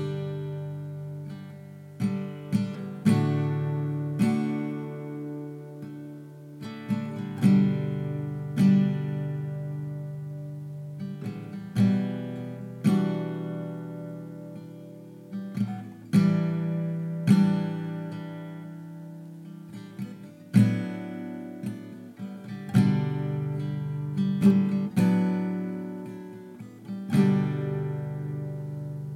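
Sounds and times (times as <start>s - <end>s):
synthesized guitar improvisation: 0.0s - 29.1s.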